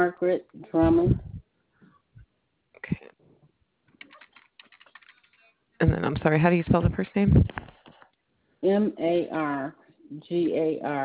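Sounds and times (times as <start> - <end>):
speech: 0.0 - 1.3, 5.8 - 7.8, 8.6 - 11.0
computer keyboard typing heard through a phone line: 4.0 - 5.5.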